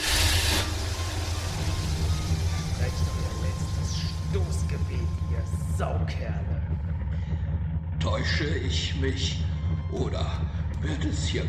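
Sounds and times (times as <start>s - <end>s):
hiss: 0.0s - 4.2s
car driving off in first gear: 0.0s - 11.4s
speech: 8.2s - 11.4s.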